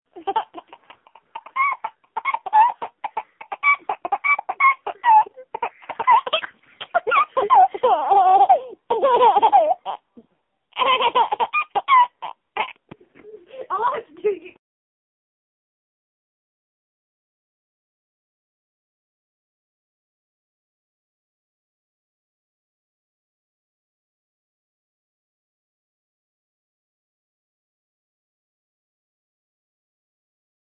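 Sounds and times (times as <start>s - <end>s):
laughing: 0.1s - 10.0s, 10.8s - 14.6s.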